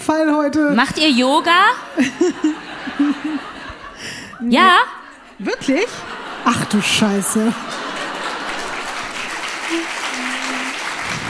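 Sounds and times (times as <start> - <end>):
speech: 0.1 - 3.5, 4.4 - 7.9
laughter: 0.9 - 11.2
audience clapping: 6.4 - 11.2.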